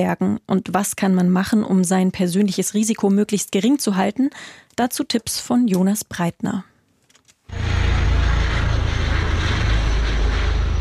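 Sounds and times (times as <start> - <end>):
speech: 0.0 - 6.7
helicopter flying over mountains: 7.5 - 10.7.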